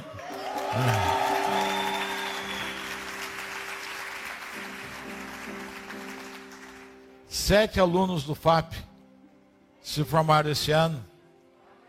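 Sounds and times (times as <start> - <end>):
audience cheering and applauding: 0.0 - 7.1
speech: 0.8 - 1.1, 7.5 - 8.8, 10.0 - 11.1.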